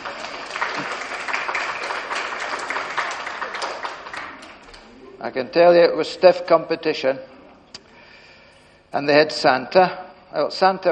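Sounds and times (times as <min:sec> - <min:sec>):
audience applause: 0:00.0 - 0:05.0
speech: 0:05.2 - 0:07.4, 0:08.9 - 0:10.8.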